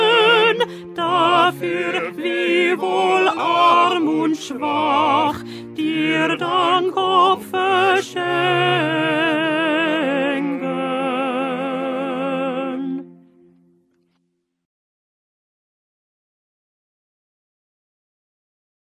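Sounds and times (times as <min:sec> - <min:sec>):
alto voice singing: 0:00.0 - 0:13.2.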